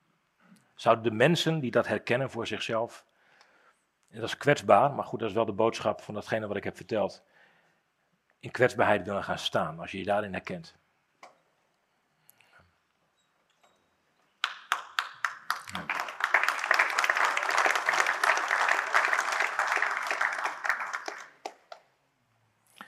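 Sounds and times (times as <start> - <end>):
speech: 0.8 - 3.1, 4.1 - 7.3, 8.4 - 10.8
audience clapping: 14.4 - 21.9.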